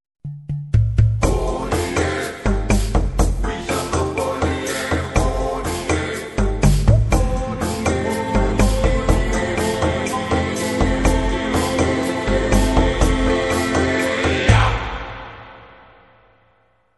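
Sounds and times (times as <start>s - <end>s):
African tribal dance new age atmospheric relaxing music: 0.2s - 15.4s.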